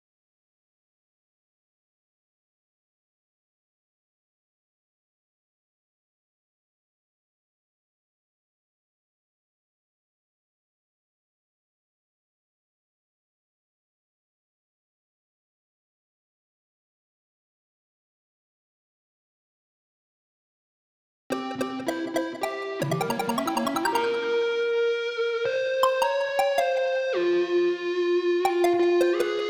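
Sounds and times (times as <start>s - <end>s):
synths: 21.4s - 24.8s, 25.8s - 27.8s, 28.5s - 29.4s.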